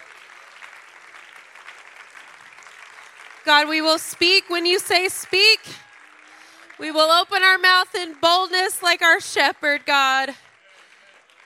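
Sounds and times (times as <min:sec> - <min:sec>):
crowd clapping: 0:00.0 - 0:11.4
speech: 0:03.4 - 0:05.8, 0:06.8 - 0:10.5.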